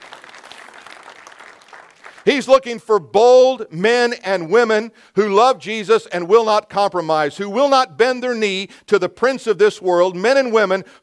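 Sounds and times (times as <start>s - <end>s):
audience clapping: 0.0s - 2.6s
speech: 2.2s - 11.0s.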